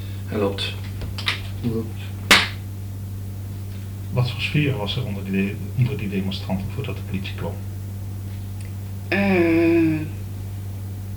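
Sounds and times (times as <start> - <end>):
steady low hum: 0.0 - 11.1
speech: 0.3 - 0.9, 1.6 - 2.1, 4.1 - 7.7, 9.1 - 9.7
soft tap: 1.0 - 1.4
hand clap: 2.3 - 2.6
voice murmuring: 9.1 - 10.2.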